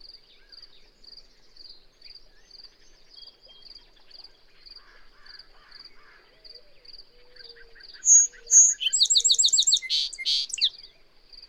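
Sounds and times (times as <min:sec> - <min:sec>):
bird whistling and trilling: 0:08.0 - 0:10.7
soft lower chirps: 0:08.1 - 0:10.7.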